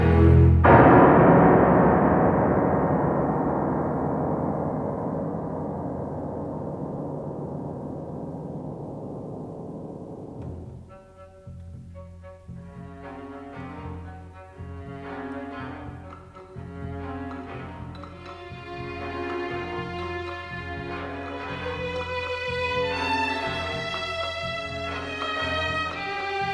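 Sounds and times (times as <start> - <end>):
string orchestra: 0.0 - 0.8, 10.8 - 26.5
piano: 0.0 - 26.5.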